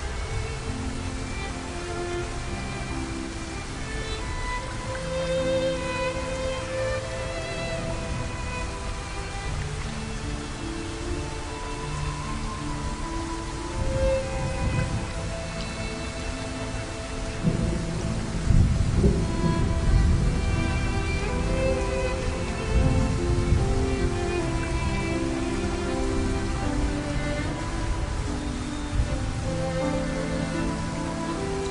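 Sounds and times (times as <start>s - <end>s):
rain: 0.0s - 31.6s
violin: 0.0s - 31.6s.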